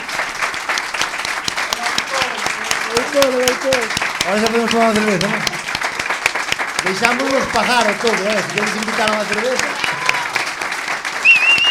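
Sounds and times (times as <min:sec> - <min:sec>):
loud crowd applause: 0:00.0 - 0:11.6
speech: 0:03.0 - 0:05.6, 0:06.8 - 0:09.8.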